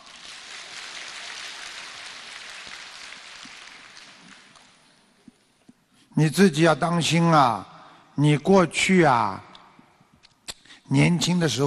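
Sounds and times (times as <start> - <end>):
applause: 0.0 - 5.0
speech: 6.2 - 9.5, 10.9 - 11.6.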